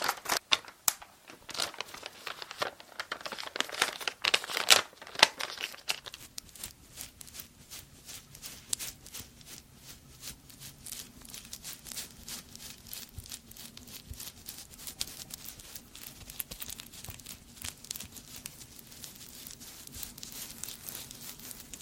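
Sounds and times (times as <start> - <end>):
quick crisp ticks and scratches: 0.0 - 21.8
bristly hair brushing strokes: 5.8 - 21.8.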